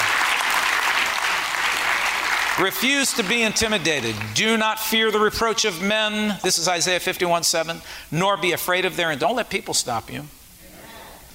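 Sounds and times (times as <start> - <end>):
audience hand clapping: 0.0 - 4.4
speech: 2.6 - 10.4.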